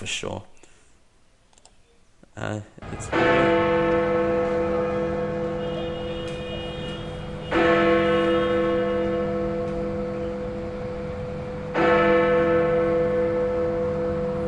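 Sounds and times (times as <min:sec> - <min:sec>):
speech: 0:00.1 - 0:00.5, 0:02.4 - 0:04.0
Big Ben clock bell bonging: 0:02.8 - 0:14.4.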